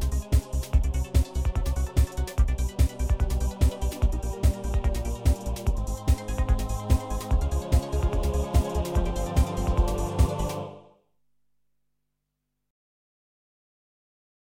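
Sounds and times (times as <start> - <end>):
background music: 0.0 - 11.0.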